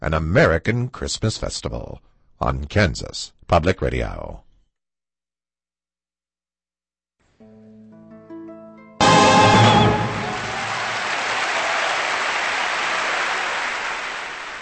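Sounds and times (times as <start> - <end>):
speech: 0.0 - 4.4
audience applause for an orchestra and choir: 9.0 - 14.6.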